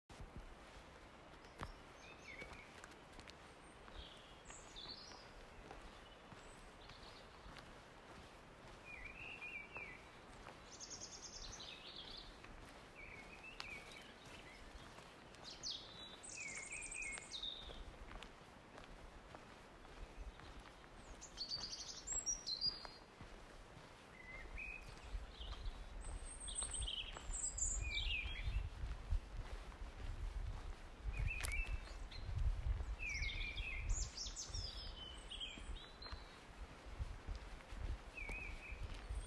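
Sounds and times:
soft footsteps: 0:00.1 - 0:39.2
birds singing: 0:03.5 - 0:17.9, 0:19.8 - 0:23.1, 0:24.0 - 0:29.6, 0:31.0 - 0:36.6, 0:37.8 - 0:39.2.

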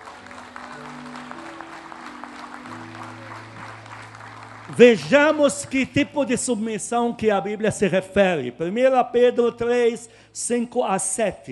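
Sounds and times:
audience applauding: 0:00.0 - 0:06.1
speech: 0:04.7 - 0:11.5.

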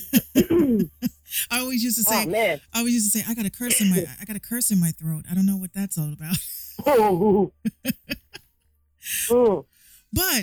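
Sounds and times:
person coughing after choking: 0:00.2 - 0:00.9
speech: 0:01.6 - 0:08.2, 0:09.0 - 0:10.4.

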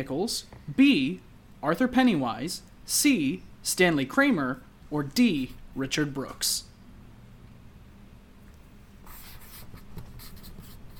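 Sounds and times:
speech: 0:00.0 - 0:06.7
quiz answer being written down: 0:09.0 - 0:10.9.

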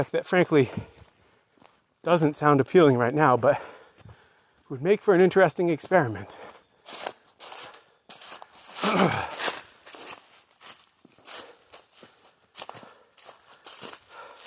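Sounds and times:
speech: 0:00.0 - 0:00.9, 0:02.0 - 0:03.8, 0:04.7 - 0:07.0, 0:08.9 - 0:09.3
footsteps walking on a woodland road: 0:01.0 - 0:02.0, 0:06.4 - 0:14.4.

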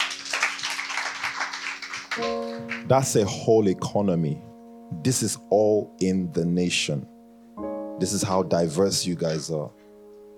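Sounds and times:
crowd applauding: 0:00.0 - 0:03.0
speech: 0:02.2 - 0:07.2, 0:08.0 - 0:09.8.

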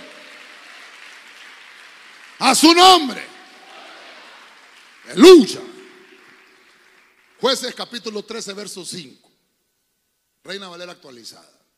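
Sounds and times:
audience clapping: 0:00.0 - 0:08.2
speech: 0:02.4 - 0:03.3, 0:05.1 - 0:05.7, 0:07.4 - 0:09.3, 0:10.4 - 0:11.6.

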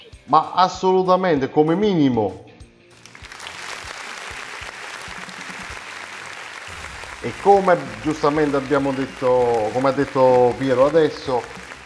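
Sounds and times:
speech: 0:00.3 - 0:02.5, 0:07.2 - 0:11.8
applause on an Italian talk program: 0:02.9 - 0:11.8.

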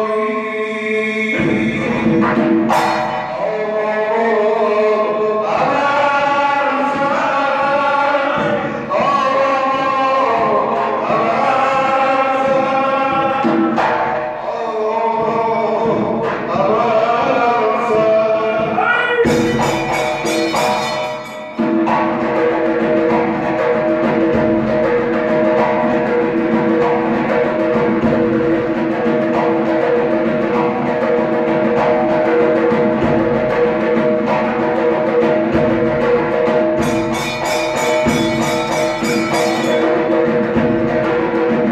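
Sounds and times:
person chanting in Zurkhaneh music: 0:00.0 - 0:02.2, 0:03.2 - 0:13.7, 0:14.4 - 0:21.3
Zurkhaneh driving drum beat: 0:01.3 - 0:41.7
cymbal-like bursts: 0:36.8 - 0:40.3.

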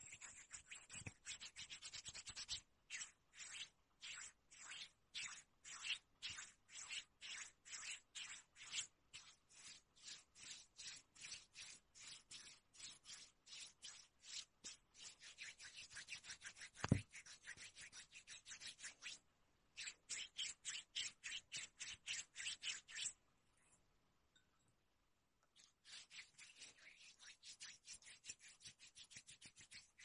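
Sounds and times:
skin rubbed in quick strokes: 0:00.0 - 0:19.2, 0:19.8 - 0:23.2, 0:25.6 - 0:30.0.

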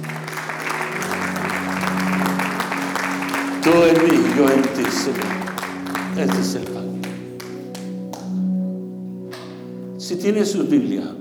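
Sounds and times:
audience applause: 0:00.0 - 0:08.3
speech: 0:03.6 - 0:05.4, 0:06.2 - 0:06.9, 0:10.1 - 0:11.1.

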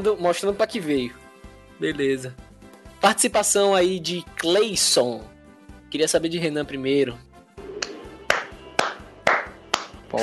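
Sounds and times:
speech: 0:00.0 - 0:01.2, 0:01.8 - 0:02.4, 0:03.0 - 0:07.3
hand clapping: 0:07.8 - 0:10.2.

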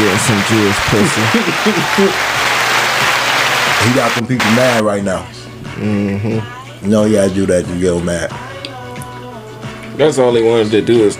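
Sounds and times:
laughter: 0:00.0 - 0:04.6
crowd clapping: 0:00.0 - 0:04.8
speech: 0:00.2 - 0:02.6, 0:03.8 - 0:08.5, 0:10.0 - 0:11.1.

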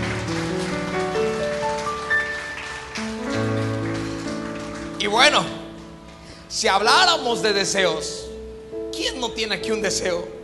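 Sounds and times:
audience applause: 0:00.0 - 0:05.8
speech: 0:05.1 - 0:05.6, 0:06.6 - 0:08.2, 0:09.2 - 0:10.4.

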